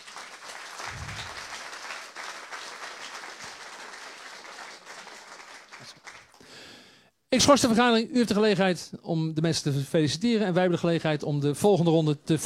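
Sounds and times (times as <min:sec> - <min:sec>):
crowd applause: 0:00.0 - 0:06.4
speech: 0:07.3 - 0:12.4.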